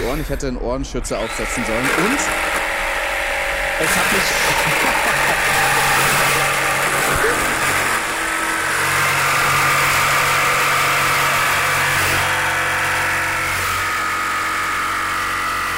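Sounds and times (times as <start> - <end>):
speech: 0.1 - 2.6, 3.8 - 6.0
power tool cutting round plexiglass piece: 1.1 - 15.7
laughter: 3.8 - 7.7.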